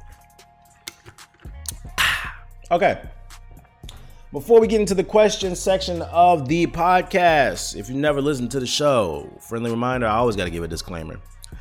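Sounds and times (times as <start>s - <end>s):
water bottle clicking and knocking: 0.8s - 2.4s
person gulping water: 1.7s - 2.4s
speech: 2.7s - 3.2s, 4.3s - 11.6s.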